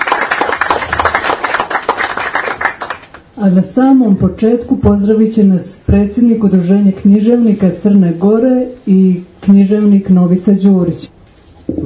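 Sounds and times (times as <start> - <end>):
audience applause at a literary evening of poetry readings: 0.0 - 3.2
speech: 3.4 - 11.2.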